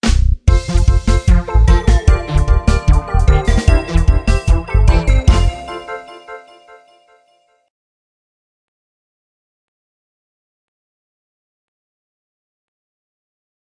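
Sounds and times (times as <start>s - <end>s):
winning jingle: 0.5s - 7.6s.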